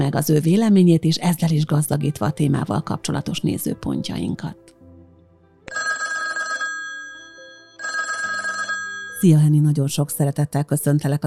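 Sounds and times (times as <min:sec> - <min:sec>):
speech: 0:00.1 - 0:04.7, 0:09.2 - 0:11.2
telephone ringing as a call is placed to a guest: 0:05.7 - 0:09.3.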